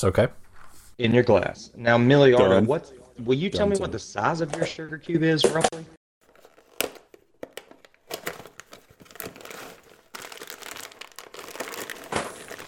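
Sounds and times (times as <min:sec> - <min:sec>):
speech: 0:00.0 - 0:00.4, 0:01.0 - 0:06.0
cardboard box being torn open: 0:08.2 - 0:12.6.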